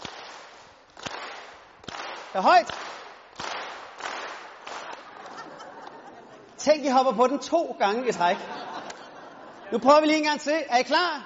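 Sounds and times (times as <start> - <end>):
audience clapping in unison: 1.0 - 5.4
speech: 2.3 - 3.0, 6.6 - 8.7, 9.7 - 11.2
laughter: 5.0 - 6.6, 8.2 - 10.1.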